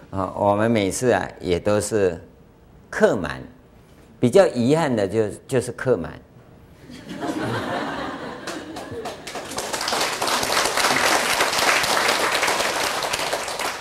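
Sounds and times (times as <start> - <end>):
speech: 0.1 - 2.3, 2.9 - 3.6, 4.2 - 6.3
laughter: 6.8 - 9.7
crowd applause: 7.8 - 13.7.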